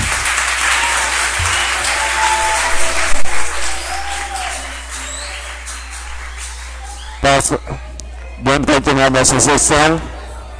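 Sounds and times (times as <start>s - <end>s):
applause: 0.0s - 7.6s
speech: 7.4s - 7.8s, 8.4s - 10.2s.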